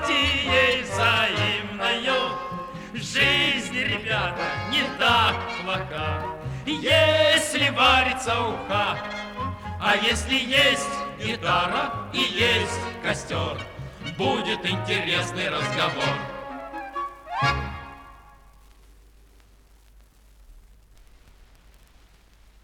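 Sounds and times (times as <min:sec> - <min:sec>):
male vocal quartet singing: 0:00.0 - 0:16.7.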